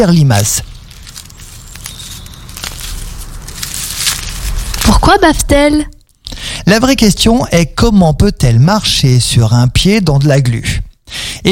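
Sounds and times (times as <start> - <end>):
speech: 0.0 - 0.7, 4.9 - 6.0, 6.6 - 11.5
slug eating a leaf: 0.4 - 5.2.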